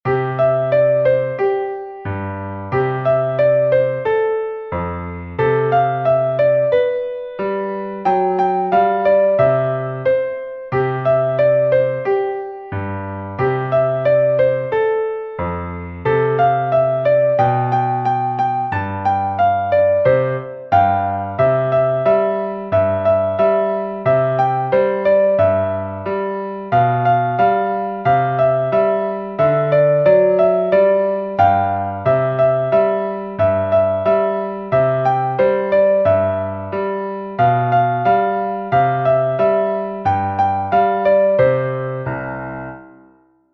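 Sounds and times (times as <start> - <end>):
Christmas song: 0.1 - 43.5.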